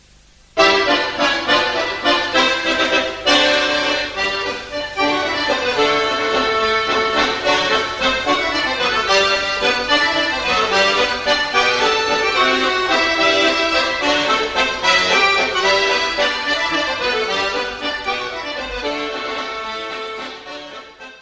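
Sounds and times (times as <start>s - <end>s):
waltz music from Belgium: 0.6s - 21.2s.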